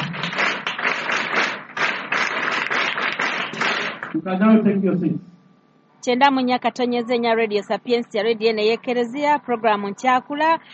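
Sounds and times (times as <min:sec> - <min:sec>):
audience clapping: 0:00.0 - 0:04.2
speech: 0:04.2 - 0:05.3, 0:06.0 - 0:10.7.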